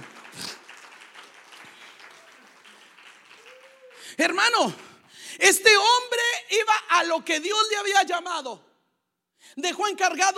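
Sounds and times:
audience applause: 0.0s - 5.2s
speech: 4.2s - 8.7s, 9.6s - 10.3s.

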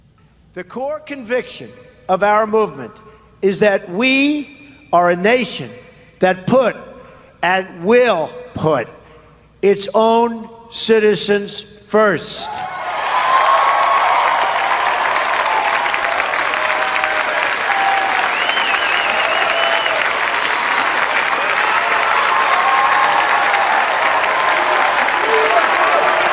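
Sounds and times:
speech: 0.5s - 9.0s, 9.6s - 12.7s
standing ovation with thunderous applause: 12.6s - 26.3s.

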